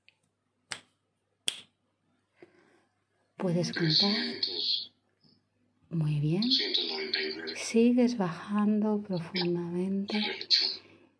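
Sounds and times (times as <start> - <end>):
finger snap: 0.0 - 1.8
speech: 3.4 - 4.7, 6.0 - 6.8, 7.6 - 10.6.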